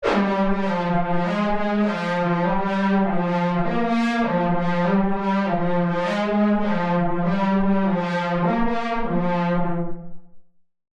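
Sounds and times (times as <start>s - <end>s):
lead melody: 0.0s - 10.0s.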